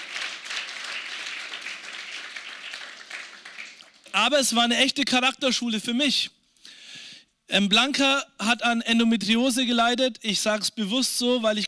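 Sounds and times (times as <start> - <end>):
audience clapping: 0.0 - 4.2
speech: 4.2 - 6.4, 7.5 - 11.6.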